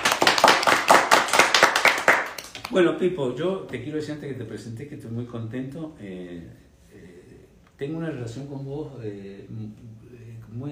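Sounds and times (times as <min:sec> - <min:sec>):
applause for the guests: 0:00.0 - 0:02.8
speech: 0:02.7 - 0:07.1, 0:07.8 - 0:10.7.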